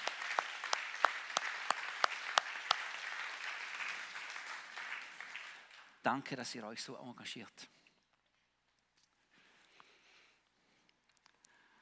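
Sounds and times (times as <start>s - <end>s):
audience applause: 0.0s - 6.0s
speech: 6.0s - 7.8s.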